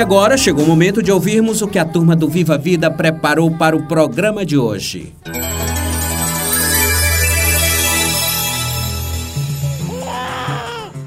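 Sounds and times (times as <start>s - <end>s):
speech: 0.0s - 5.6s
music: 0.0s - 11.0s
baby crying: 9.8s - 11.0s.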